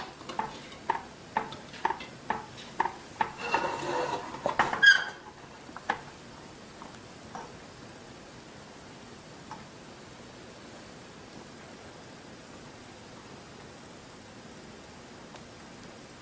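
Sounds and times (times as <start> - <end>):
stirring pudding in a pot: 0.0 - 7.5.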